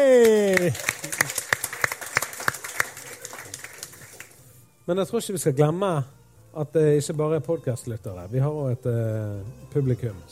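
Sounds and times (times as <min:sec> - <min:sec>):
speech: 0:00.0 - 0:01.0, 0:04.9 - 0:10.3
live audience applause: 0:00.0 - 0:04.5.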